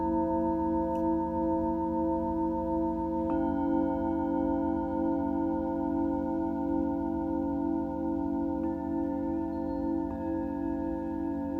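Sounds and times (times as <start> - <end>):
singing bowls ringing for sound healing: 0.0 - 11.5.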